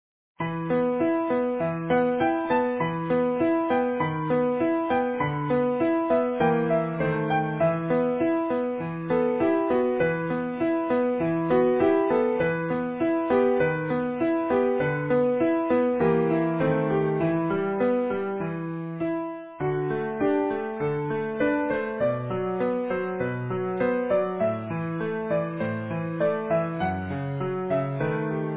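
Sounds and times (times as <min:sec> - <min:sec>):
easy piano piece: 0:00.4 - 0:28.5.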